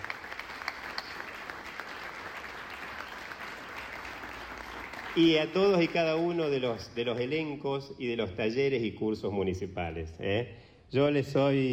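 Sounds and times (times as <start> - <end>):
audience applause: 0.0 - 6.4
speech: 5.2 - 11.7.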